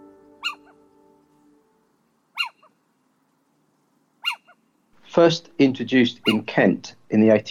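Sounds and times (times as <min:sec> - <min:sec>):
little owl calling: 0:00.4 - 0:00.8, 0:02.3 - 0:02.8, 0:04.2 - 0:04.6, 0:06.2 - 0:06.6
speech: 0:05.2 - 0:07.5.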